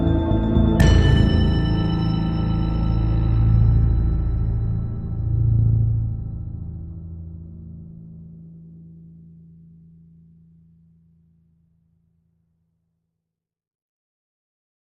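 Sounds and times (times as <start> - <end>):
tense music loop: 0.0 - 7.6.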